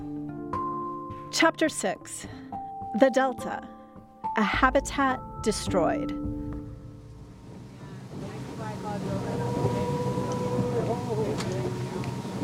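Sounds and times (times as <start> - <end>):
speech: 1.3 - 2.4, 3.0 - 3.7, 4.4 - 6.4
small boat heading out on water: 7.0 - 12.4.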